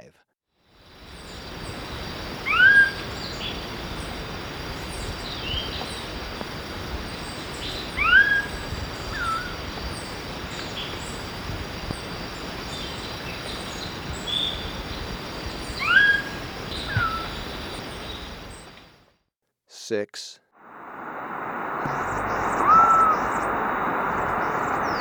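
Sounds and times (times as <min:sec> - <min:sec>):
Lined Antshrike calling in South America: 0:01.1 - 0:18.9, 0:21.8 - 0:24.9.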